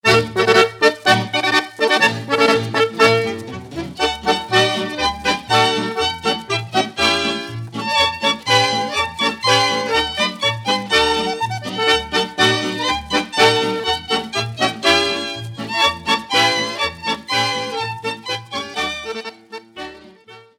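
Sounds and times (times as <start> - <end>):
polka music: 0.0 - 20.5.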